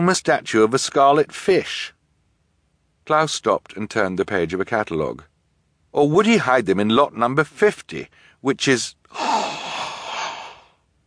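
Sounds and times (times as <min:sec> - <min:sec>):
speech: 0:00.0 - 0:02.0, 0:03.1 - 0:05.3, 0:06.0 - 0:09.6
single breathy sharp gasp: 0:09.2 - 0:10.8.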